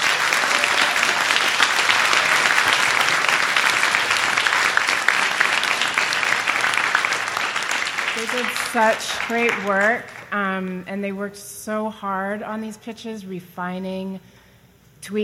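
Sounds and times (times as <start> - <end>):
audience applause: 0.0 - 10.4
speech: 8.2 - 14.4, 15.0 - 15.2.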